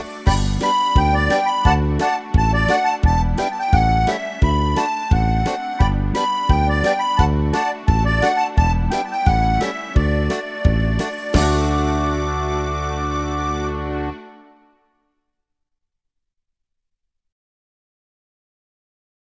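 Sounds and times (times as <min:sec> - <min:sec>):
melody: 0:00.2 - 0:14.5.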